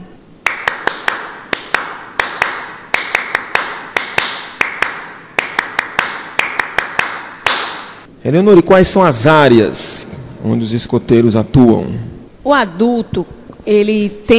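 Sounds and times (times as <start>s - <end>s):
scouts' rhythmic group clapping: 0.4s - 8.1s
speech: 8.3s - 14.3s.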